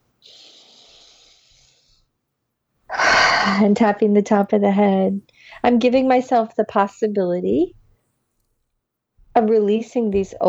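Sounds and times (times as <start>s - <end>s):
long deep breath during a tapping self-acceptance exercise: 0.2s - 2.1s, 2.9s - 3.7s
speech: 3.6s - 7.8s, 9.4s - 10.4s.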